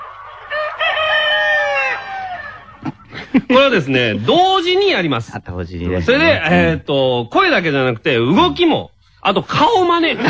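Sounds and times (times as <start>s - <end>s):
voices imitating a rooster crowing in a game round: 0.0s - 3.3s
laughter: 2.4s - 4.4s, 10.0s - 10.2s
speech: 3.4s - 10.2s.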